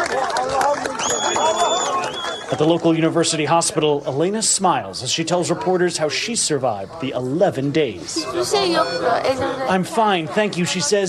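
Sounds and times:
crowd celebrating with applause: 0.0 - 3.3
speech: 2.6 - 11.0.

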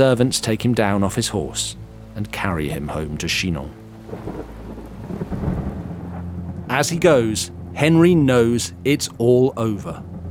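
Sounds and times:
speech: 0.0 - 5.4, 6.7 - 10.1
rain hissing: 0.0 - 10.2
rolling thunder: 3.7 - 7.7.

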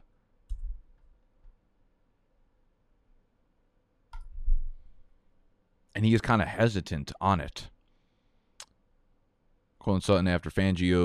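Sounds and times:
computer mouse clicks while looking something up on Twitter: 0.5 - 1.6, 4.1 - 4.4
speech: 6.0 - 7.7, 9.8 - 11.0.

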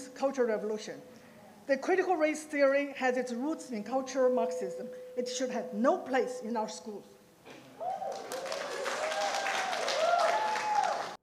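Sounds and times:
speech: 0.2 - 7.2
audience applause: 7.8 - 11.2.

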